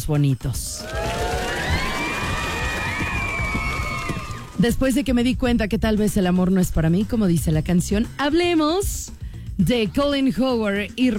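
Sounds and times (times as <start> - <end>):
speech: 0.0 - 1.1, 4.6 - 11.1
crowd clapping: 0.8 - 4.8.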